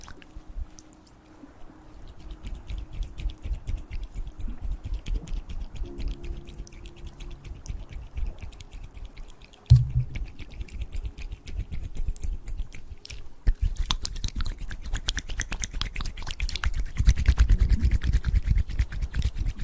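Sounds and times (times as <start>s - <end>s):
wet mouth clicks smacks and chewing: 2.0s - 19.6s
sharp pop: 9.7s - 10.3s.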